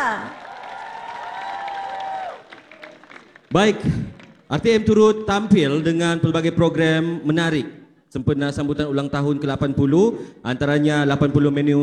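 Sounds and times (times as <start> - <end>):
audience applause and cheering: 0.0 - 5.0
speech: 3.5 - 11.8.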